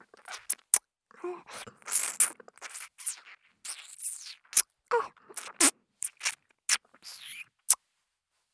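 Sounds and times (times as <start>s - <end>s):
ASMR ear licking and nibbling mouth clicks: 0.1s - 0.8s, 1.5s - 4.7s, 5.3s - 7.8s.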